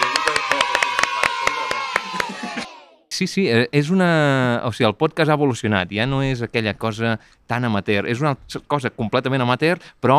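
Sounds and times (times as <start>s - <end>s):
small audience applause: 0.0s - 2.8s
voices cheering and whooping: 0.0s - 3.0s
speech: 3.2s - 10.1s.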